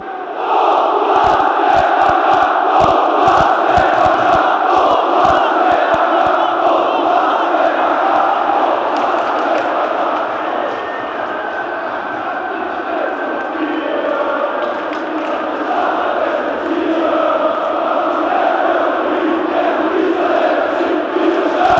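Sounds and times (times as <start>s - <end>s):
rapid chanting in Vienna: 0.0s - 21.7s.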